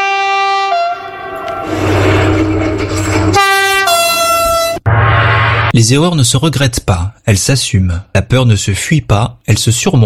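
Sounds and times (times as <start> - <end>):
horn of a TGV high-speed train blasting: 0.0 - 2.2, 3.3 - 4.9
TGV high-speed train roaring past: 0.6 - 5.7
speech: 5.8 - 10.0.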